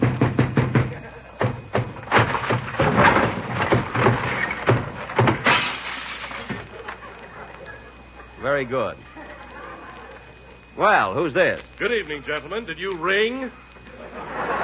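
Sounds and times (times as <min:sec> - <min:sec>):
door being broken down: 0:00.0 - 0:07.0
laughter: 0:00.8 - 0:01.6, 0:06.5 - 0:11.1, 0:13.8 - 0:14.6
crashing and splintering rumble of a door: 0:01.8 - 0:07.0
speech: 0:08.6 - 0:09.1, 0:10.8 - 0:13.6.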